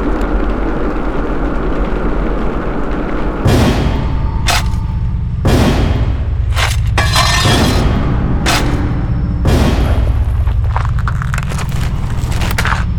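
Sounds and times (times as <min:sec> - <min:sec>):
scary ambience: 0:00.0 - 0:12.9.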